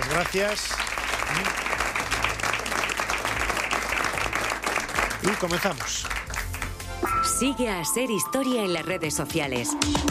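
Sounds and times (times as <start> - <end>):
room full of people clapping: 0.0 - 7.0
speech: 0.2 - 1.7, 5.2 - 6.2, 7.4 - 10.1.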